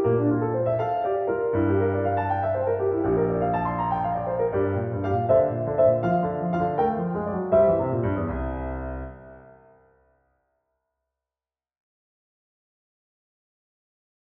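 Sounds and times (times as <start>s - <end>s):
piano accompaniment: 0.0s - 10.0s.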